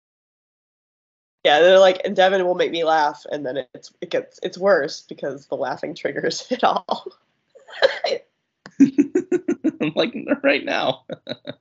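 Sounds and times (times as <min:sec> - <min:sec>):
speech: 0:01.4 - 0:11.5
laughter: 0:08.7 - 0:11.5
person coughing harshly: 0:08.8 - 0:10.3.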